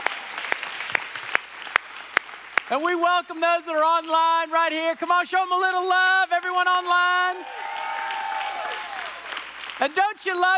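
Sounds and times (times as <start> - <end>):
audience applause in church: 0.0 - 3.0, 7.2 - 10.5
speech: 2.7 - 7.6, 9.8 - 10.5.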